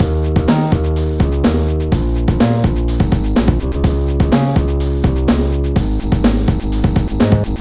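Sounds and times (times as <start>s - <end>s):
music beat: 0.0s - 7.5s.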